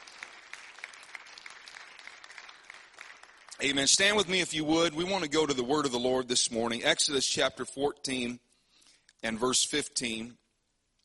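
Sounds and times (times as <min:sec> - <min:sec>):
crowd clapping hands: 0:00.0 - 0:04.6
speech: 0:03.6 - 0:08.4, 0:09.2 - 0:10.4.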